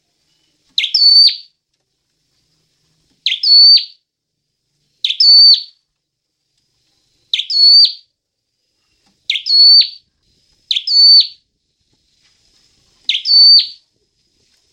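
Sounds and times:
Hill prinia singing whistled phrases: 0:00.8 - 0:01.5, 0:03.2 - 0:04.0, 0:05.0 - 0:05.8, 0:07.3 - 0:08.1, 0:09.3 - 0:10.0, 0:10.7 - 0:11.4, 0:13.1 - 0:13.8.

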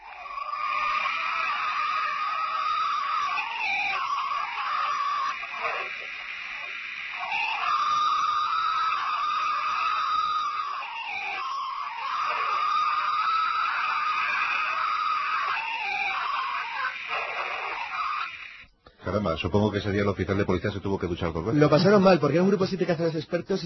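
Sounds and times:
alleged Bigfoot screams in forest: 0:00.0 - 0:18.6
speech: 0:19.2 - 0:23.6.

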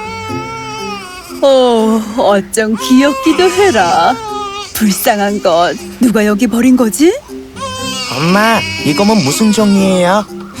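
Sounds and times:
baby crying: 0:00.0 - 0:02.0, 0:02.6 - 0:06.2, 0:07.6 - 0:10.2
speech: 0:01.4 - 0:07.4, 0:08.2 - 0:10.4.

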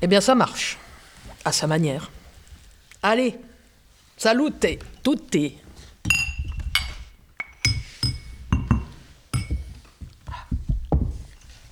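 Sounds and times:
speech: 0:00.0 - 0:02.2, 0:03.0 - 0:03.5, 0:04.2 - 0:06.2
dishes and glasses clinking as table is cleared: 0:06.0 - 0:11.6
thuds and knocks of table and chairs being cleared away: 0:07.7 - 0:11.6.

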